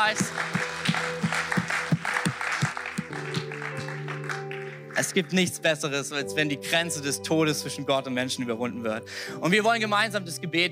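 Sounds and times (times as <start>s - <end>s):
speech: 0.0s - 0.6s, 5.1s - 10.6s
audience applause: 0.0s - 5.4s.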